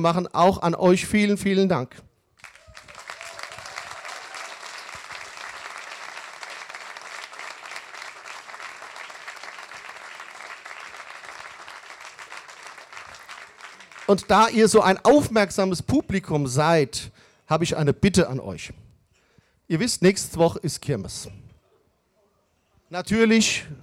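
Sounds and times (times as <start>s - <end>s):
speech: 0.0s - 2.1s, 14.1s - 18.8s, 19.7s - 21.4s, 22.9s - 23.8s
audience applause: 2.4s - 14.4s.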